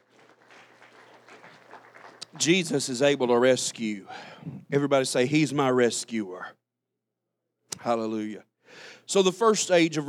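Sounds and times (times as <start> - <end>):
crowd clapping hands in praise: 0.0 - 4.0
speech: 2.4 - 6.6, 7.8 - 10.0.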